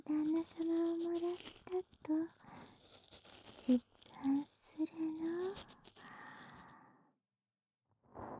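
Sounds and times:
ear cleaning: 0:00.1 - 0:06.6.

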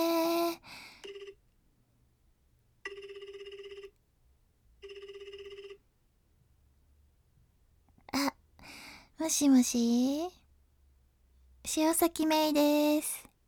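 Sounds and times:
telephone ringing while placing a call: 0:01.0 - 0:01.4, 0:02.8 - 0:04.0, 0:04.8 - 0:05.9
speech: 0:09.3 - 0:10.4, 0:11.7 - 0:13.3.

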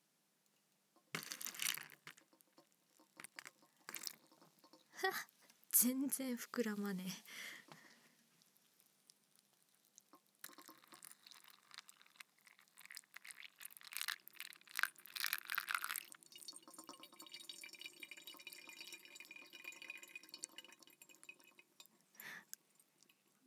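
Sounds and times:
hot water poured over ground deep-roast Mandheling coffee in a drip coffee maker: 0:00.9 - 0:23.4
speech: 0:05.0 - 0:07.7.

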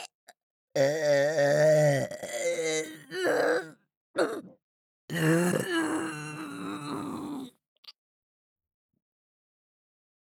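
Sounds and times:
person burping: 0:00.8 - 0:07.5.

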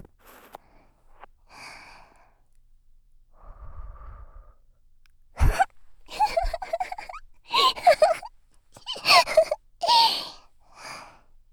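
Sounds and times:
ear cleaning in the right ear: 0:05.4 - 0:10.2.

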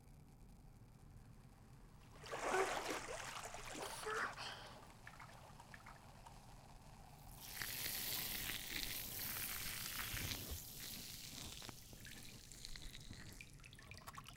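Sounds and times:
fizzing bubbly sound effect: 0:02.1 - 0:14.3.

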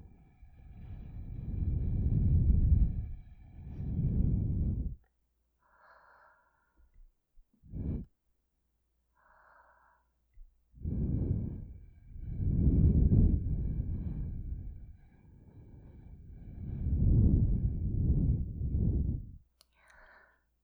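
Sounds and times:
blowing into ears through a straw: 0:00.7 - 0:05.0, 0:10.8 - 0:19.4.

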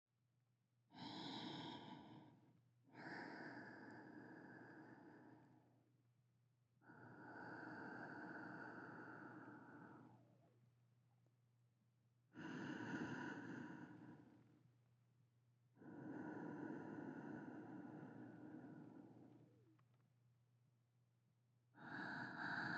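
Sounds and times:
sleeping breathing: 0:01.0 - 0:05.7, 0:06.8 - 0:10.4, 0:12.4 - 0:14.6, 0:15.8 - 0:19.5, 0:21.8 - 0:22.7.

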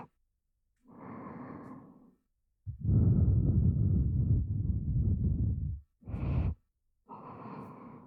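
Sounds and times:
heartbeat: 0:02.7 - 0:06.6.

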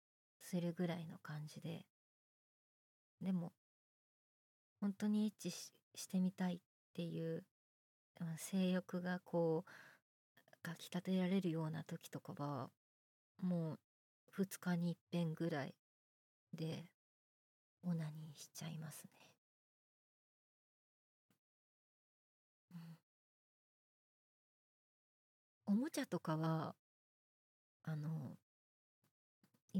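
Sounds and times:
boyish new female voice actress performing: 0:00.4 - 0:01.9, 0:03.2 - 0:03.6, 0:04.8 - 0:07.5, 0:08.2 - 0:09.7, 0:10.6 - 0:12.8, 0:13.4 - 0:13.8, 0:14.4 - 0:15.8, 0:16.6 - 0:16.9, 0:17.8 - 0:19.3, 0:25.7 - 0:26.8, 0:27.9 - 0:28.4.

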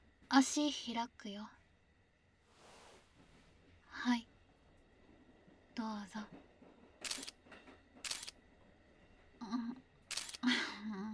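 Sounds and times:
speech: 0:00.3 - 0:01.6, 0:04.0 - 0:04.3, 0:05.8 - 0:06.5, 0:09.4 - 0:09.8
camera shutter taking photos: 0:07.0 - 0:07.3, 0:08.0 - 0:08.3, 0:10.1 - 0:10.5.

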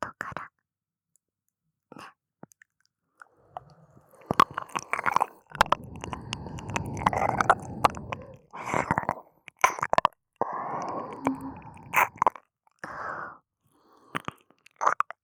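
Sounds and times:
wet mouth sounds of an ear being licked: 0:03.5 - 0:10.1, 0:11.1 - 0:12.4, 0:14.0 - 0:15.2.

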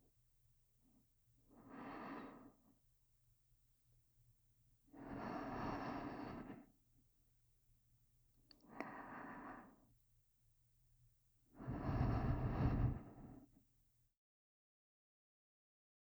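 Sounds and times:
sleep breathing loop: 0:01.6 - 0:02.6, 0:05.0 - 0:06.7, 0:08.7 - 0:09.8, 0:11.6 - 0:13.5.

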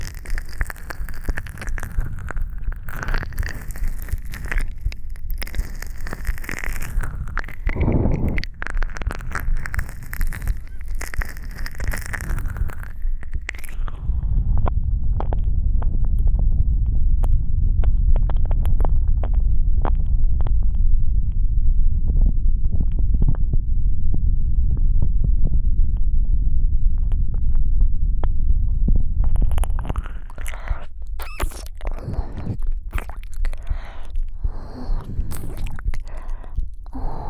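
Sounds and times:
ASMR ear licking: 0:00.0 - 0:14.0, 0:29.2 - 0:37.2
heartbeat ASMR: 0:00.7 - 0:10.9, 0:12.6 - 0:37.2.

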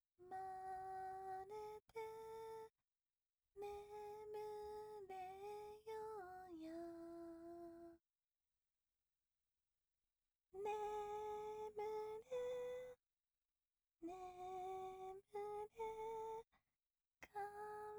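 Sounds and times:
lullaby: 0:00.2 - 0:02.8, 0:03.6 - 0:08.0, 0:10.6 - 0:13.0, 0:14.0 - 0:16.6, 0:17.2 - 0:17.9.

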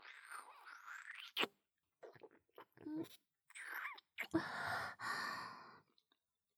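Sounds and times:
oral sex sounds: 0:00.0 - 0:04.5.

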